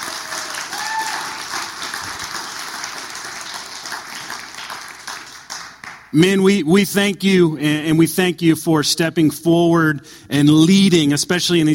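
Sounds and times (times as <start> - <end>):
crowd clapping in a round of applause: 0.0 - 6.2
speech: 6.1 - 11.7.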